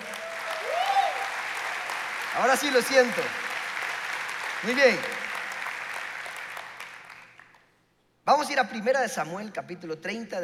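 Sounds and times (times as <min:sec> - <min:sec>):
audience applause: 0:00.0 - 0:07.6
speech: 0:02.4 - 0:03.4, 0:04.6 - 0:05.2, 0:08.3 - 0:10.4.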